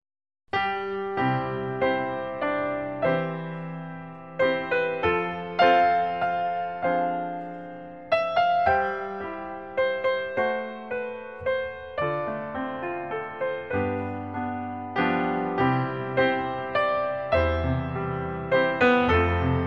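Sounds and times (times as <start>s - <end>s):
instrumental song: 0.5s - 19.6s.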